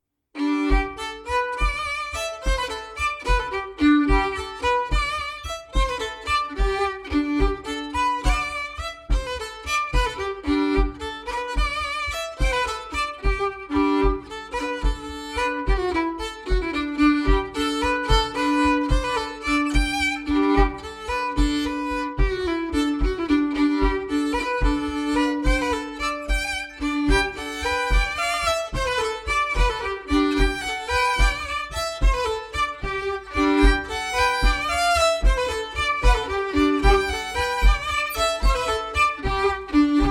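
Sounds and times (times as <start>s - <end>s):
bourree dance tune: 0.4s - 40.1s.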